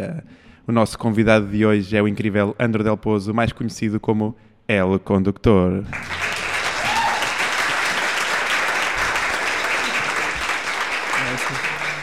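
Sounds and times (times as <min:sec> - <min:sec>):
speech: 0:00.0 - 0:06.2
audience applause: 0:05.9 - 0:12.0.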